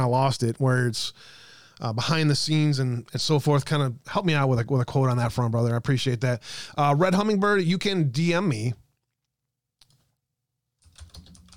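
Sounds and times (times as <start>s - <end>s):
speech: 0.0s - 8.8s
computer keyboard typing: 10.8s - 11.5s.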